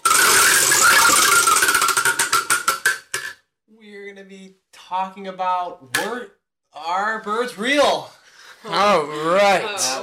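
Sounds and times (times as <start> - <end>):
prize wheel spinning: 0.0 - 3.0
speech: 4.9 - 10.0.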